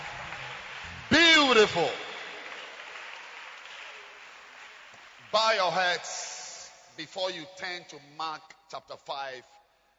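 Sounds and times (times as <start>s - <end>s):
church congregation clapping hands: 0.0s - 6.7s
speech: 1.5s - 2.0s, 5.4s - 6.3s, 7.0s - 9.6s.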